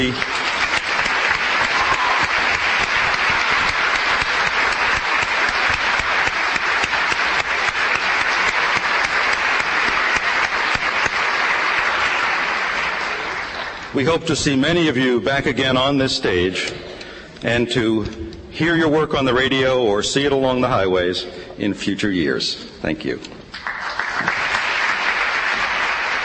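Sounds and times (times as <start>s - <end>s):
speech: 0.0s - 0.3s, 14.0s - 23.4s
audience applause: 0.0s - 14.0s, 23.5s - 26.2s.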